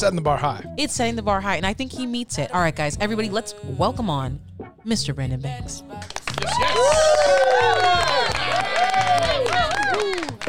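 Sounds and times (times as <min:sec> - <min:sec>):
speech: 0:00.0 - 0:08.4
crowd cheering and whooping: 0:06.2 - 0:10.4.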